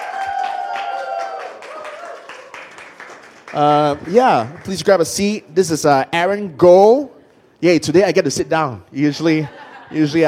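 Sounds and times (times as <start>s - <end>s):
church congregation clapping to welcome a guest to the stage: 0.0s - 5.2s
speech: 3.5s - 10.2s
laughter: 9.2s - 10.2s.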